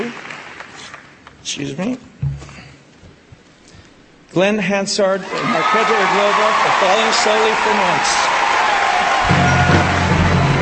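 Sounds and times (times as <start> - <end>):
speech: 1.5 - 2.1, 4.4 - 8.4
loud cheering at awards ceremony: 5.2 - 10.6.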